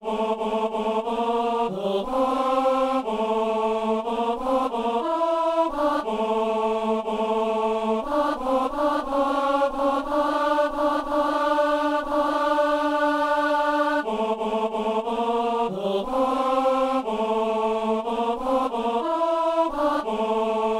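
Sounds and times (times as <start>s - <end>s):
tenor singing a simple mass Gloria: 0.0s - 20.7s.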